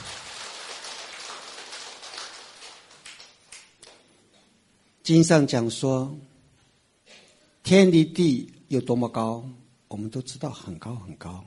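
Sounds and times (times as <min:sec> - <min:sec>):
audience applause: 0:00.0 - 0:03.3
speech: 0:05.1 - 0:06.3, 0:07.7 - 0:11.4.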